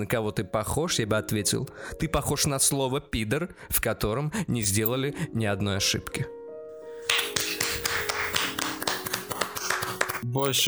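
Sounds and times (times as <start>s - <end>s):
speech: 0.0s - 6.4s, 10.2s - 10.6s
thin sparse applause: 7.1s - 10.6s.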